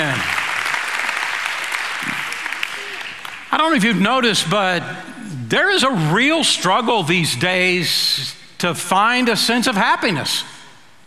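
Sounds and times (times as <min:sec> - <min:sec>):
church audience applauding the dads: 0:00.0 - 0:03.8
speech: 0:03.5 - 0:10.5.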